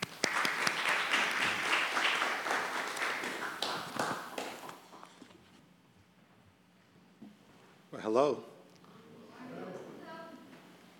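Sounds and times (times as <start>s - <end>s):
church congregation applause welcoming a guest preacher: 0.0s - 5.0s
speech: 8.1s - 8.5s.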